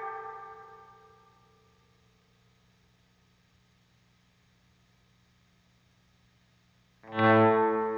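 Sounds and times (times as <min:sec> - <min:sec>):
guitar volume swell: 0:07.1 - 0:07.9.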